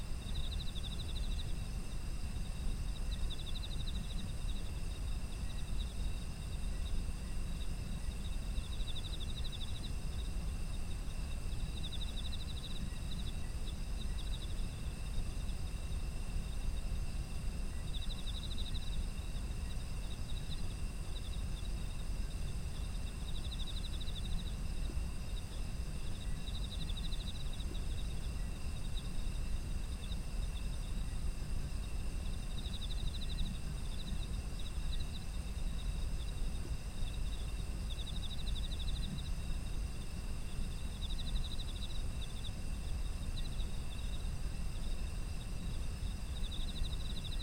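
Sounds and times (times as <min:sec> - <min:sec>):
heavy low background rumble: 0:00.0 - 0:47.4
insect chorus trilling: 0:00.0 - 0:47.4.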